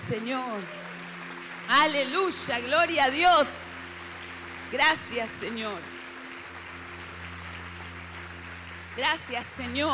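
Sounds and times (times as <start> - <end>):
church congregation applause: 0.0 - 9.9
speech: 0.1 - 0.8, 1.7 - 3.7, 4.7 - 6.0, 9.0 - 9.9.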